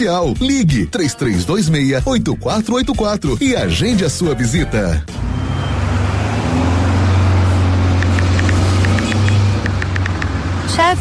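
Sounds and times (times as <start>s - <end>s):
speech: 0.0s - 5.3s
car engine droning: 5.0s - 10.9s
tire squeals as the car brakes and skids: 5.1s - 9.8s.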